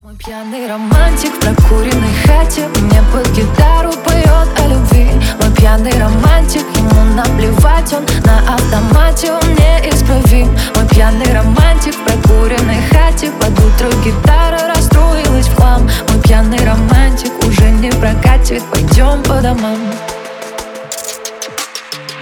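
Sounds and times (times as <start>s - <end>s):
remix music: 0.3s - 22.2s.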